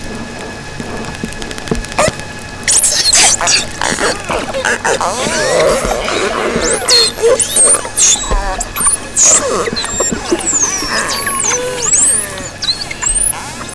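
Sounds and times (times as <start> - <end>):
common dolphin: 0.0 - 13.7.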